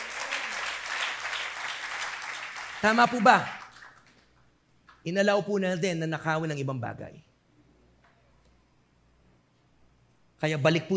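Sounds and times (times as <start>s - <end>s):
church congregation clapping for the Lord: 0.0s - 4.4s
speech: 2.8s - 3.6s, 5.0s - 7.3s, 10.4s - 10.9s.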